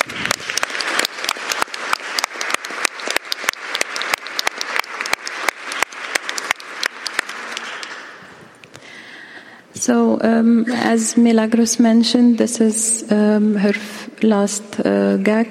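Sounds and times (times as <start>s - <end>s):
audience applause: 0.0s - 8.6s
speech: 9.8s - 15.4s.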